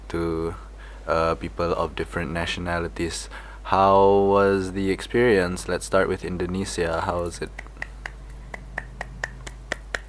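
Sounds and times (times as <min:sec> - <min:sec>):
speech: 0:00.1 - 0:07.7
person clapping: 0:07.5 - 0:10.0.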